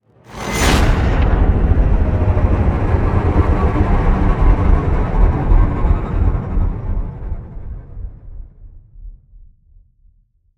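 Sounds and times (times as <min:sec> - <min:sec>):
modulated stinger: 0:00.4 - 0:08.4.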